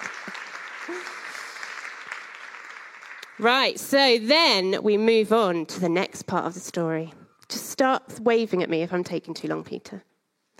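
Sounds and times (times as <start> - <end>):
crowd clapping: 0.0 - 3.8
speech: 3.4 - 7.2, 7.8 - 10.1.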